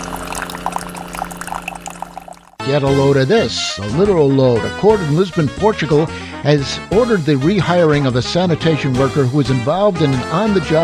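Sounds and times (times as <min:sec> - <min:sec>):
coffee being poured into a cup: 0:00.0 - 0:02.6
speech: 0:02.7 - 0:10.8.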